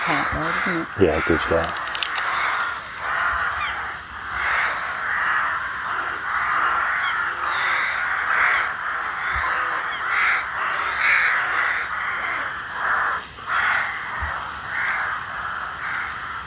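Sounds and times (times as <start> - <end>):
flock of rooks cawing: 0.0 - 16.4
speech: 0.1 - 1.9.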